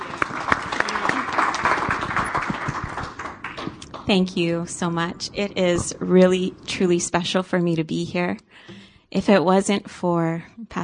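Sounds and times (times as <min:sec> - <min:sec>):
church congregation applause welcoming visiting guests: 0:00.0 - 0:04.1
speech: 0:04.1 - 0:10.8.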